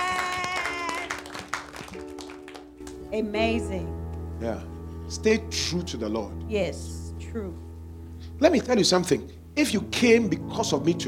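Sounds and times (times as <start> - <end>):
audience clapping hands: 0.0 - 3.1
speech: 3.1 - 7.6, 8.4 - 11.0.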